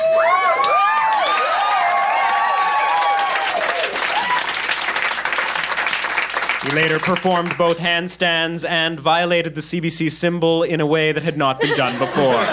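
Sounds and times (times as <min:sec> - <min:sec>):
crowd applauding and cheering: 0:00.0 - 0:07.8
speech: 0:06.6 - 0:12.5
laughter: 0:11.4 - 0:12.5.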